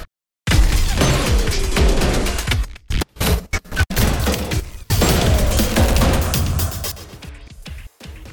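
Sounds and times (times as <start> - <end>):
damage sound effect: 0.5 - 2.5, 4.0 - 7.1.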